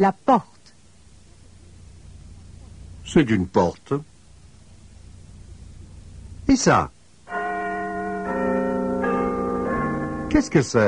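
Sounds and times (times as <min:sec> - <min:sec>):
speech: 0:00.0 - 0:00.5, 0:03.1 - 0:04.1, 0:06.5 - 0:07.0, 0:10.3 - 0:10.8
clock chiming: 0:07.3 - 0:10.8.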